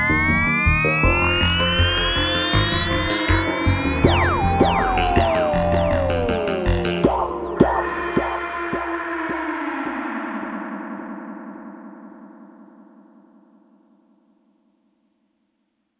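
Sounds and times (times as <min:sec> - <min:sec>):
electronic trailer soundtrack: 0:00.0 - 0:10.6.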